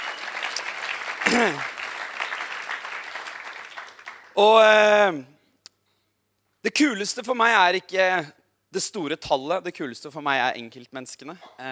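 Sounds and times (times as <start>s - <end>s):
audience applause: 0.0s - 4.5s
speech: 1.3s - 1.8s, 4.4s - 5.4s, 6.6s - 11.7s.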